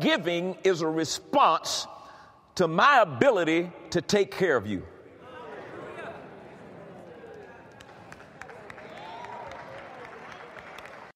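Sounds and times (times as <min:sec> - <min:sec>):
speech: 0:00.0 - 0:02.0, 0:02.6 - 0:04.9
audience applauding: 0:07.0 - 0:11.1.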